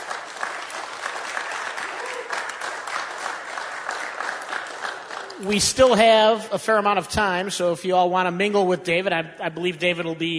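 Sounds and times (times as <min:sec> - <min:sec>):
audience round of applause: 0:00.0 - 0:05.9
speech: 0:05.4 - 0:10.3.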